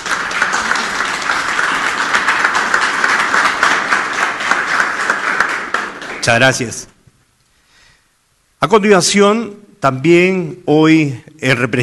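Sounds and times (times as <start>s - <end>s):
audience applause: 0.0s - 6.8s
speech: 6.2s - 6.9s, 8.7s - 11.8s.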